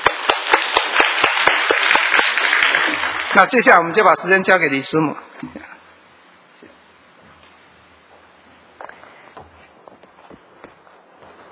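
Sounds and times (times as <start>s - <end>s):
audience applause: 0.0s - 3.6s
speech: 3.4s - 5.6s.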